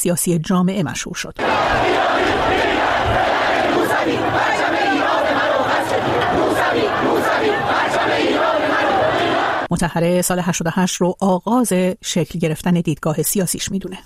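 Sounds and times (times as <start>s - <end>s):
speech: 0.0s - 4.8s, 9.8s - 14.0s
protest crowd chanting and shouting: 1.4s - 9.7s.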